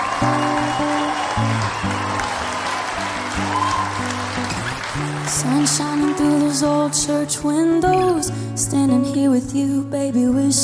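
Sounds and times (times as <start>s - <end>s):
audience applause welcoming a performer: 0.0s - 7.4s
speech: 5.4s - 10.6s.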